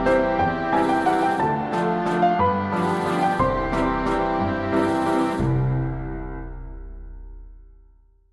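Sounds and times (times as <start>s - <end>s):
classical waltz: 0.0s - 5.7s.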